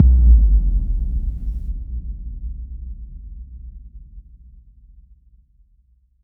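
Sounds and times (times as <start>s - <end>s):
impact sound effect: 0.0s - 1.7s.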